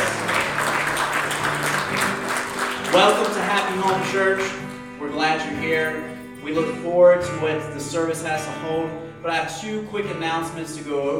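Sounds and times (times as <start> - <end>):
audience applause: 0.0 - 4.6
speech: 3.0 - 11.1.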